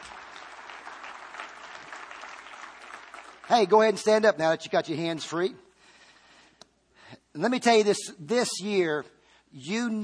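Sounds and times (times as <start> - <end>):
audience clapping: 0.0 - 4.4
speech: 3.5 - 5.6, 7.4 - 10.0.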